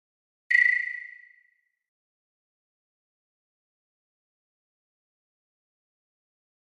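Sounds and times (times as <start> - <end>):
camera flash beep: 0.5 - 1.4.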